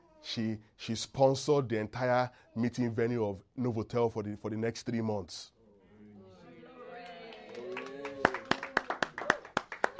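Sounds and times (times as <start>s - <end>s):
speech: 0.2s - 5.6s
audience clapping: 6.9s - 9.9s.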